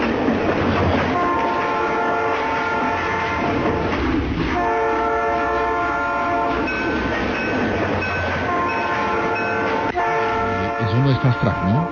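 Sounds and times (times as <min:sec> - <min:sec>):
train passing: 0:00.0 - 0:11.8
train horn: 0:01.1 - 0:03.6, 0:04.5 - 0:06.7, 0:08.4 - 0:11.8
speech: 0:11.2 - 0:11.8.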